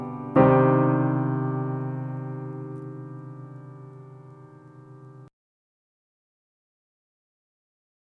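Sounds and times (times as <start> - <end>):
solo piano: 0.0 - 5.3.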